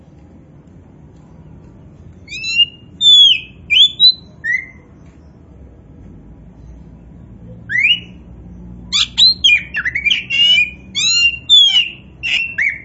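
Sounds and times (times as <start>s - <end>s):
Oriental magpie-robin whistles: 2.3s - 4.8s, 7.7s - 8.2s, 8.9s - 12.8s.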